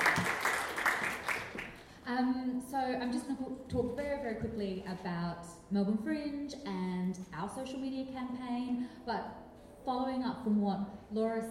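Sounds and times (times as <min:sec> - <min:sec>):
audience applause: 0:00.0 - 0:01.8
speech: 0:02.7 - 0:11.4.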